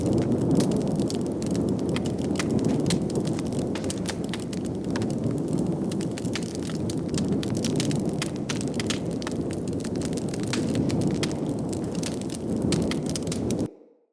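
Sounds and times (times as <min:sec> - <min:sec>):
large burn pile fire burning: 0:00.0 - 0:13.7.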